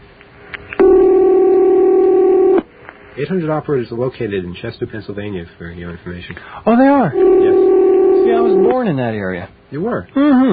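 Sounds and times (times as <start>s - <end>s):
electronic telephone ringing: 0.8s - 2.6s, 7.1s - 8.8s
speech: 3.2s - 10.5s.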